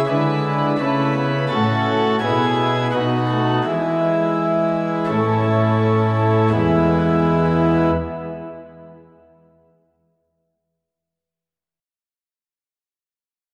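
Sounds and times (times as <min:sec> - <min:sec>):
instrumental music: 0:00.0 - 0:10.0.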